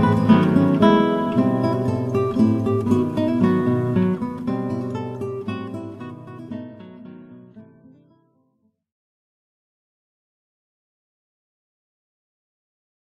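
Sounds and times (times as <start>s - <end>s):
4 guitars playing: 0.0s - 7.9s.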